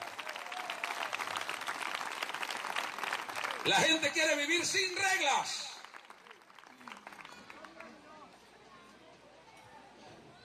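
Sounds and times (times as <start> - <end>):
audience applauding: 0.0 - 8.0
speech: 3.6 - 5.7.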